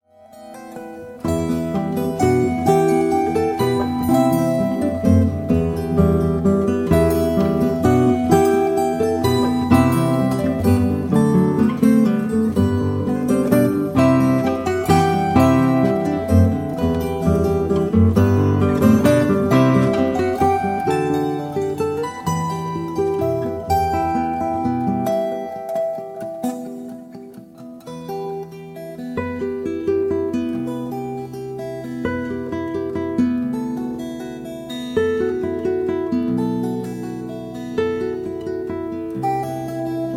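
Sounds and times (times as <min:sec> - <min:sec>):
harp guitars: 0:00.1 - 0:40.1.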